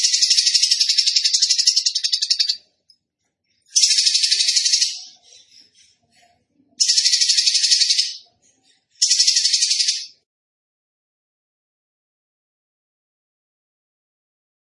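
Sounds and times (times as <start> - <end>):
bird song of rasping pulsed trills: 0.0 - 2.6, 3.6 - 10.2.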